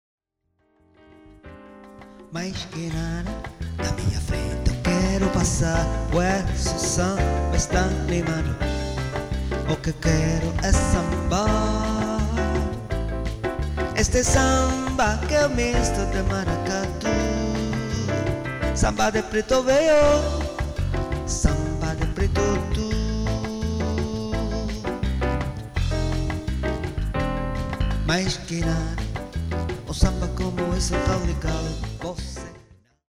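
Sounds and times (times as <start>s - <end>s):
piano bar music: 0.6s - 32.7s.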